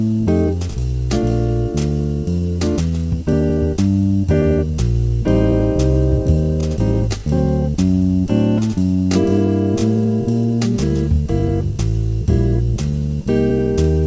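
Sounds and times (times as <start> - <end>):
120 bpm backing track: 0.0 - 14.0.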